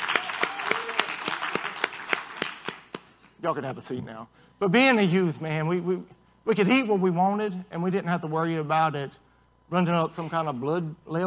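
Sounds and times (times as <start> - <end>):
audience clapping: 0.0 - 3.2
speech: 3.4 - 11.2.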